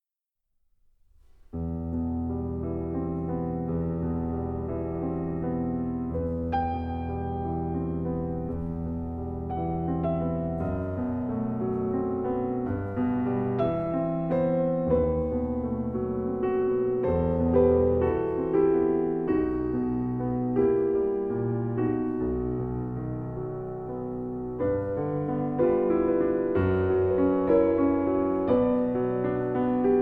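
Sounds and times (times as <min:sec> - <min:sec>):
nocturne in E minor: 0:01.3 - 0:30.0.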